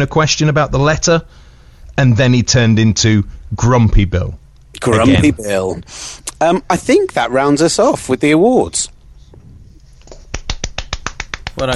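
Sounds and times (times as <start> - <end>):
speech: 0.0 - 1.4, 2.0 - 9.0, 11.6 - 11.7
light polite golf clap: 10.0 - 11.7.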